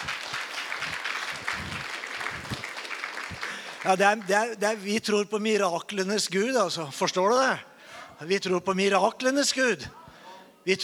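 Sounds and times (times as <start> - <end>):
crowd clapping: 0.0 - 4.8
speech: 3.8 - 10.0, 10.6 - 10.8.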